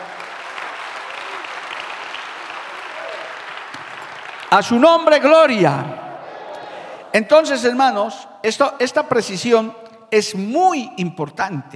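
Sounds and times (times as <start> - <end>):
audience applause: 0.0 - 7.1
speech: 4.5 - 6.0, 7.1 - 11.7.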